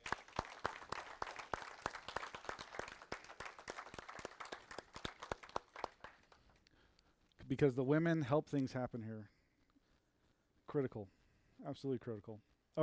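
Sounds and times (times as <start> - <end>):
audience applause: 0.0 - 6.6
speech: 7.5 - 9.4, 10.7 - 12.8.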